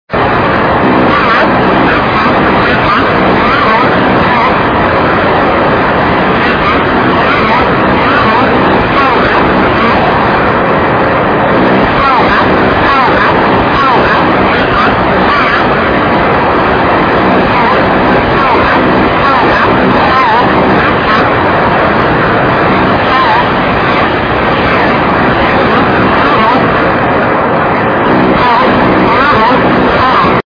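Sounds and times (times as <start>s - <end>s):
noise: 0.0s - 30.4s.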